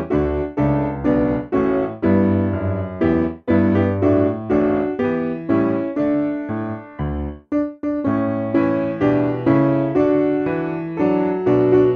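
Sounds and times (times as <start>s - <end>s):
simple piano piece: 0.0s - 11.9s.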